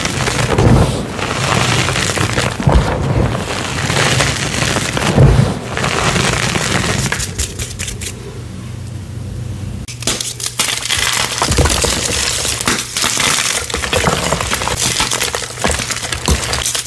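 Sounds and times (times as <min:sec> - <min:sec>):
colorful dyed chalk blocks crushed into powder: 0:00.0 - 0:08.2, 0:09.9 - 0:16.8
low steady hum: 0:00.0 - 0:10.5.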